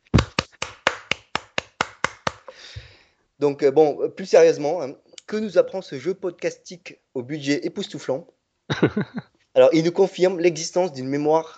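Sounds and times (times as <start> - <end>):
applause: 0.1 - 2.5
speech: 3.4 - 11.5
laughter: 8.7 - 9.2.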